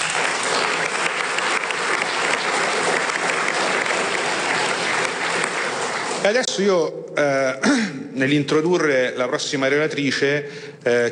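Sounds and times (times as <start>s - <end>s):
audience applause: 0.0s - 6.6s
speech: 6.3s - 11.1s.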